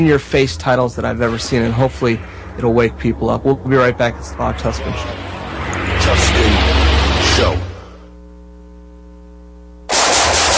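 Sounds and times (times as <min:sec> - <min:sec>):
speech: 0:00.0 - 0:06.6, 0:07.4 - 0:07.6
low hum: 0:00.0 - 0:09.9
rapid gunfire: 0:09.9 - 0:10.5.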